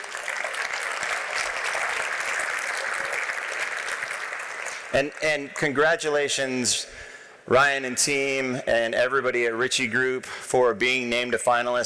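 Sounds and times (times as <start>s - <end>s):
audience applause at an industry awards panel: 0.0s - 5.7s
speech: 4.9s - 11.8s.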